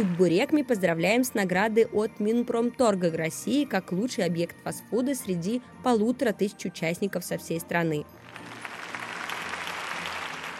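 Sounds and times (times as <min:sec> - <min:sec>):
speech: 0:00.0 - 0:08.6
crowd applause: 0:08.3 - 0:10.5.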